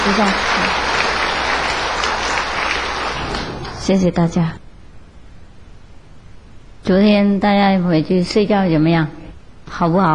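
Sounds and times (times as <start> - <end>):
enthusiastic audience applause inviting a Buddhist master to teach: 0.0 - 3.8
speech: 0.1 - 0.8, 3.9 - 4.6, 6.8 - 10.1.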